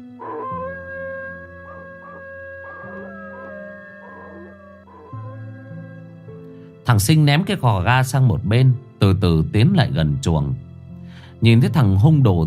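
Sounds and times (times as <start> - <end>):
several dogs howling together: 0.2 - 6.2
speech: 6.9 - 10.7, 11.4 - 12.4.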